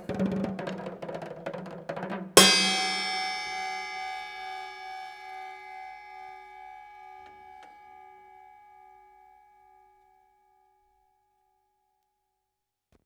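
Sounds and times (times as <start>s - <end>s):
drum solo: 0.0s - 5.2s.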